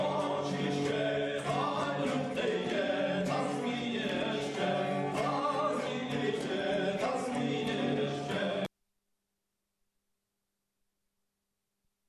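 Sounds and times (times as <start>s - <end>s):
Ukrainian baroque song: 0.0s - 8.7s.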